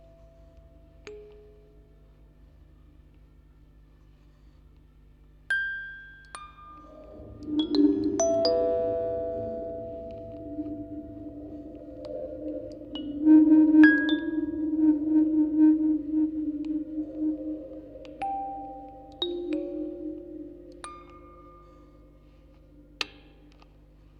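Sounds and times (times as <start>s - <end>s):
four music boxes playing recorded on tape: 5.6s - 23.5s.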